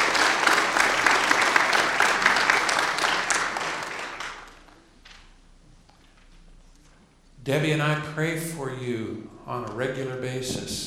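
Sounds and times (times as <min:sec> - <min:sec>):
audience applause: 0:00.0 - 0:05.0
speech: 0:07.4 - 0:10.8.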